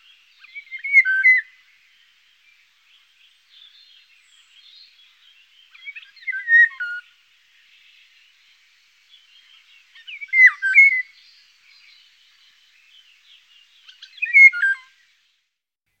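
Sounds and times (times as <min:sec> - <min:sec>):
Eurasian golden oriole fluty yodelling whistle: 0:00.4 - 0:01.5, 0:05.7 - 0:07.0, 0:10.0 - 0:11.2, 0:13.8 - 0:14.9.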